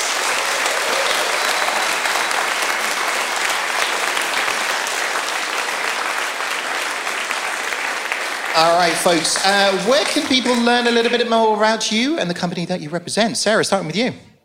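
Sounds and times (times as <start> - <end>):
audience applause: 0.0 - 11.5
speech: 8.6 - 14.3.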